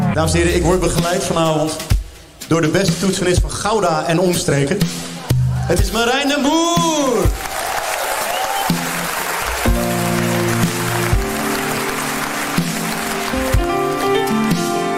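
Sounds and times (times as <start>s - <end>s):
speech: 0.1s - 1.9s, 2.5s - 5.1s, 5.7s - 7.5s
audience applause: 6.9s - 14.9s.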